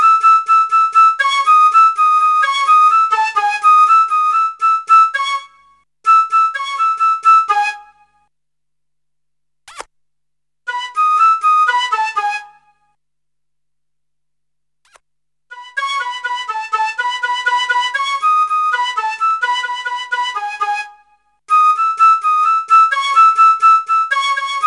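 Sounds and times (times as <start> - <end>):
flute: 0.0 - 8.3, 10.7 - 13.0, 15.5 - 24.6.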